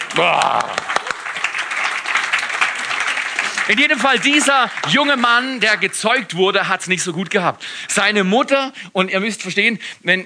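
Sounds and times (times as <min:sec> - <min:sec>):
audience applause: 0:00.0 - 0:06.4
speech: 0:00.2 - 0:00.9, 0:03.7 - 0:10.2.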